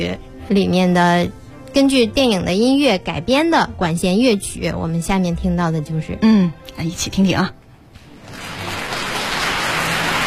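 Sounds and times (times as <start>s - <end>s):
speech: 0.0s - 7.6s
audience applause before a live orchestral piece: 8.2s - 10.2s.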